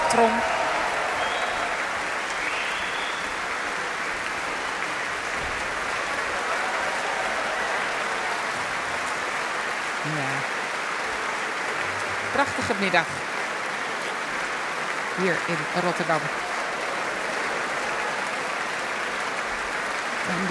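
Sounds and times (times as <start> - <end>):
audience applause: 0.0 - 20.4
speech: 0.1 - 0.6, 12.4 - 13.3, 15.2 - 16.4, 20.3 - 20.4.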